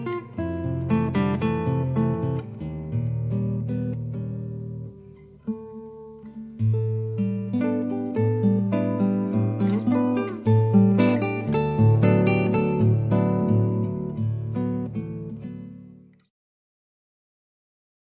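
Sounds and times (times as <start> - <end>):
guitar lullaby: 0.0 - 16.3.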